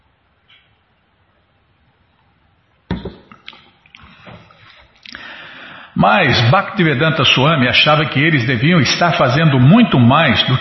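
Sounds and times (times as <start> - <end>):
person drinking water: 3.2 - 5.9
speech: 6.0 - 10.5.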